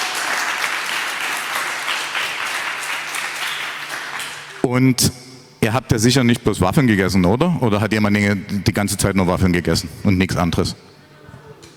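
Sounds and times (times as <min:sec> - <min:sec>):
crowd applauding: 0:00.0 - 0:04.7
speech: 0:04.6 - 0:10.9.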